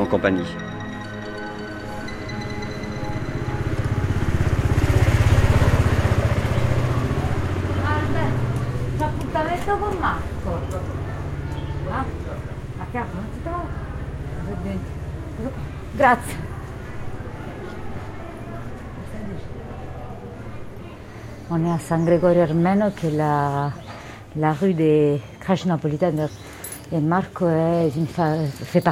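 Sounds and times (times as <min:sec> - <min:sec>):
motorcycle engine rumbling: 0:00.0 - 0:23.6
speech: 0:00.1 - 0:00.7, 0:09.6 - 0:11.0, 0:12.9 - 0:13.8, 0:14.5 - 0:16.5, 0:21.5 - 0:23.8, 0:24.4 - 0:28.9
crowd chattering: 0:02.8 - 0:23.8.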